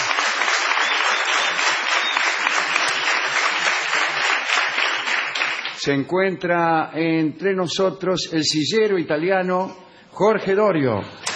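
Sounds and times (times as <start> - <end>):
audience ovation: 0.0 - 5.8
speech: 5.8 - 11.2.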